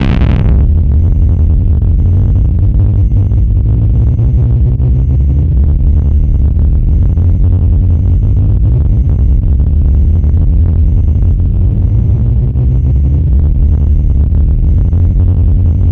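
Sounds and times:
twisted special effect: 0.0 - 1.4
sub bass wave: 0.0 - 15.9.

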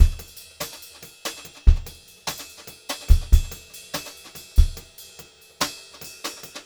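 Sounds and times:
brushed drum loop: 0.0 - 6.6.

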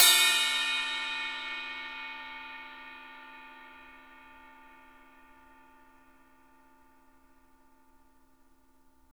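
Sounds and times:
ride cymbal: 0.0 - 4.4.

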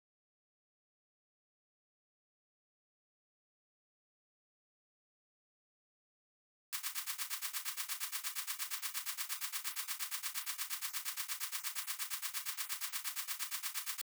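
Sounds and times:
drum loop: 6.8 - 14.0
shaker: 6.8 - 14.0.

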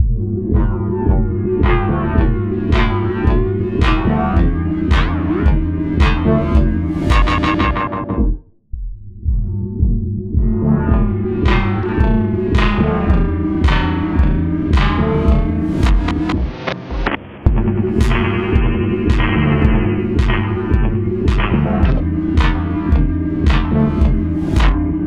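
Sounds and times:
filtered beat: 0.0 - 25.0.

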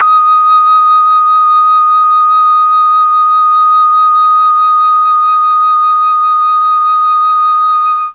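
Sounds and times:
D#4 Mellotron flute note: 0.0 - 8.1.

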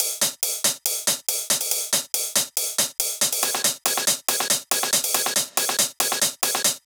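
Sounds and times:
full drum loop at 140 BPM: 0.0 - 6.8.

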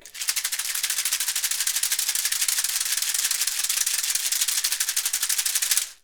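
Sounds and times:
percussion rattle: 0.0 - 6.0.

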